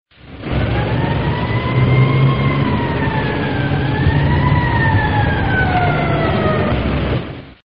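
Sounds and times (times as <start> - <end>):
police siren: 0.3 - 7.3.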